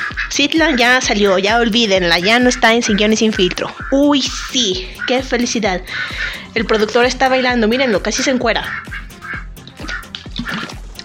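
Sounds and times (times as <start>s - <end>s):
speech: 0.4s - 9.0s
water: 9.7s - 11.0s.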